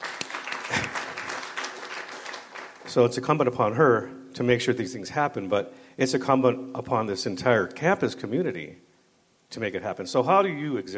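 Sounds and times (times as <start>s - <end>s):
audience applause: 0.0s - 2.9s
speech: 2.9s - 8.9s, 9.5s - 10.9s.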